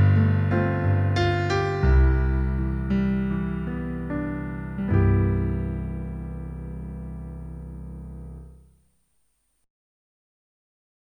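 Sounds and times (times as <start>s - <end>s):
piano: 0.0s - 8.8s.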